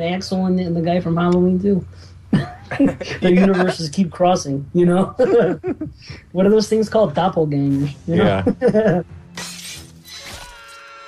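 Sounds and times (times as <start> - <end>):
speech: 0.0 - 9.2
laughter: 2.3 - 3.8, 5.2 - 6.0, 8.2 - 9.0
glass bottle smashed in a film: 9.4 - 10.8.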